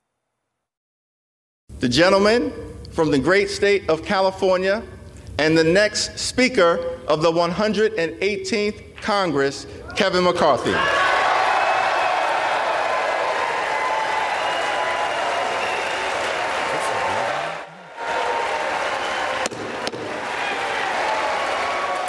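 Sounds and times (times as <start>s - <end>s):
speech: 1.8s - 11.1s
crowd in the House chamber applauding and cheering: 10.8s - 22.0s.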